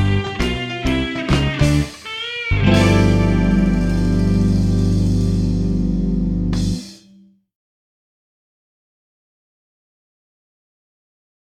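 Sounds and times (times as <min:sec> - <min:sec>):
full mix of blues music: 0:00.0 - 0:07.3.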